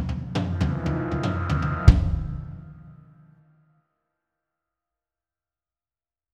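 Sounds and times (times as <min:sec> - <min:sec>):
tense terror trailer music: 0:00.1 - 0:03.3.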